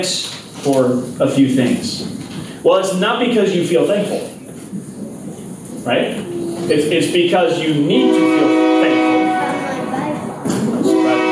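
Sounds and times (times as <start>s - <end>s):
speech: 0.0s - 4.8s, 5.8s - 9.1s
train passing: 4.9s - 11.2s.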